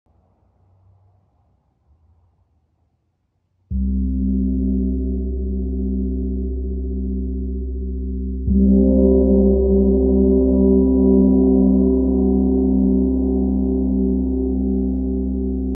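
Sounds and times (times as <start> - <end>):
gong: 3.7 - 15.7.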